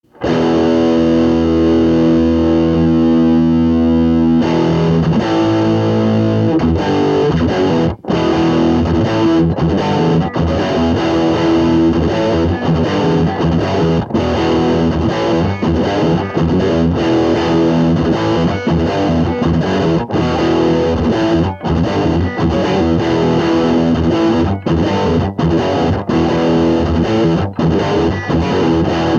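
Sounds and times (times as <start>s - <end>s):
riff tapes: 0.0s - 29.1s.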